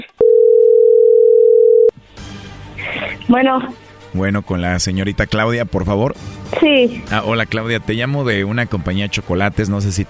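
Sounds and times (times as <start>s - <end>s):
telephone dial tone before a call: 0.2s - 1.9s
speech: 3.3s - 10.0s.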